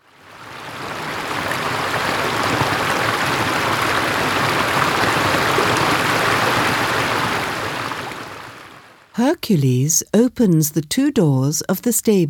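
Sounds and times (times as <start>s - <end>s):
water flowing like a stream: 0.0s - 9.9s
speech: 9.2s - 12.2s.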